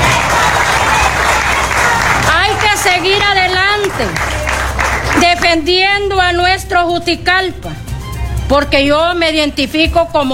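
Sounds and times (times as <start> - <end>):
audience applause: 0.0 - 5.6
speech: 4.0 - 4.4, 5.2 - 7.8, 8.5 - 10.3.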